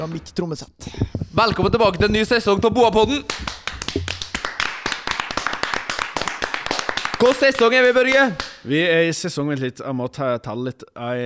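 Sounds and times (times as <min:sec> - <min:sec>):
speech: 0:00.0 - 0:04.1, 0:07.2 - 0:11.2
applause: 0:03.3 - 0:08.6.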